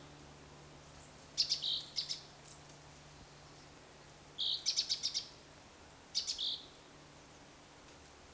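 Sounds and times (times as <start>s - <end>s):
Great tit Parus major chinking notes with whistled tone: 1.4s - 2.3s, 4.4s - 5.3s, 6.2s - 6.7s.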